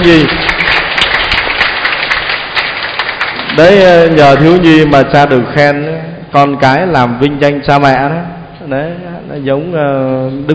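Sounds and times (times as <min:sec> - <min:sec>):
speech: 0:00.0 - 0:00.4, 0:03.6 - 0:10.5
church congregation in a parish clapping to thank the priest: 0:00.0 - 0:05.2.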